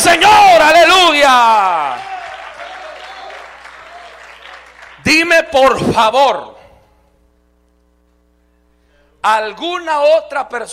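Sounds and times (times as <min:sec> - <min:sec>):
audience applauding: 0:00.0 - 0:05.3
speech: 0:05.1 - 0:06.6, 0:09.2 - 0:10.7.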